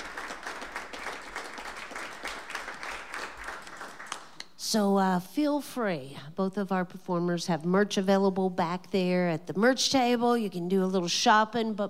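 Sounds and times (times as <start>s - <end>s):
audience applause: 0.0s - 4.4s
speech: 4.7s - 11.8s.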